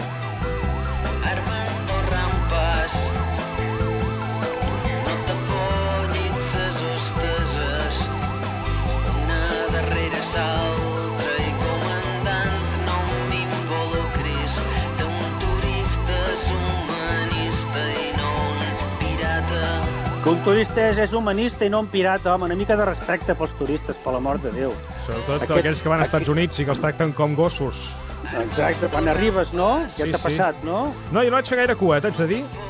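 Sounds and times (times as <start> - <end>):
pop song: 0.0 - 32.6
speech: 20.3 - 32.6.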